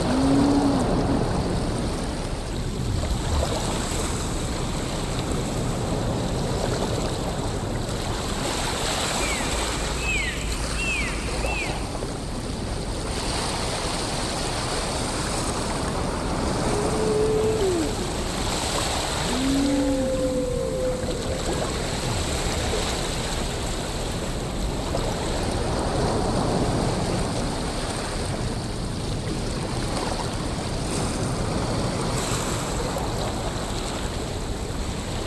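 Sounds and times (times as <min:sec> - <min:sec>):
whales: 0:00.0 - 0:02.1, 0:09.0 - 0:12.4, 0:15.8 - 0:22.7
ocean: 0:00.0 - 0:35.2.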